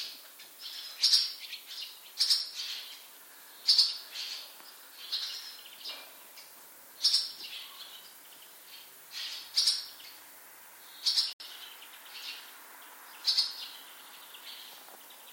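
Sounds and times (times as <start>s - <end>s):
bird calling with short high chirping notes: 0.0s - 15.3s.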